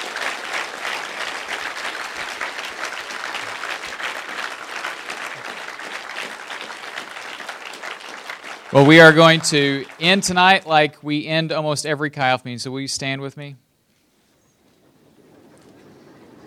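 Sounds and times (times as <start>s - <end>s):
audience applause: 0.0s - 10.9s
speech: 8.7s - 13.6s.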